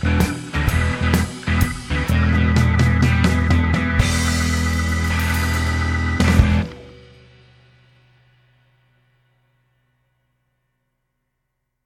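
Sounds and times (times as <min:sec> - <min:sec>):
blues music: 0:00.0 - 0:09.0.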